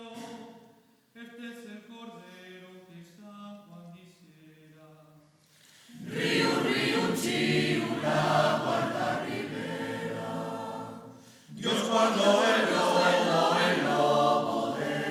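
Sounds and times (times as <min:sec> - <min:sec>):
polyphonic choir singing: 0:05.9 - 0:15.0.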